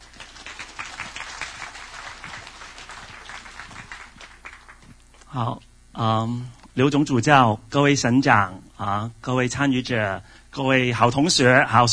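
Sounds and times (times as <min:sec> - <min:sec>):
audience applause: 0:00.0 - 0:05.0
speech: 0:05.3 - 0:11.9.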